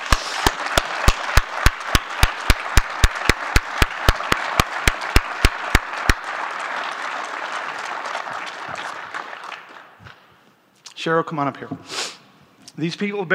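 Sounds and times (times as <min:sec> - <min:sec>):
audience applause: 0:00.0 - 0:10.1
speech: 0:11.0 - 0:12.0, 0:12.8 - 0:13.3.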